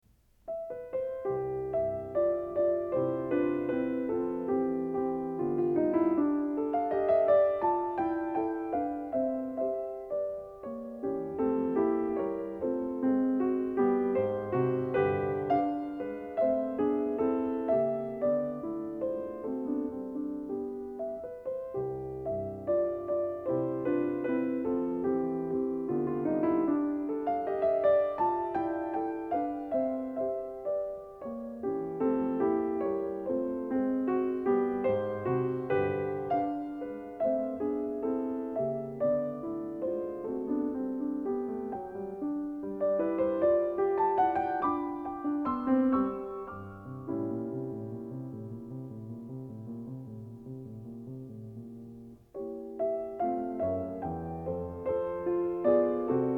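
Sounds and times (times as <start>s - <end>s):
piano variations in C: 0.0s - 56.3s.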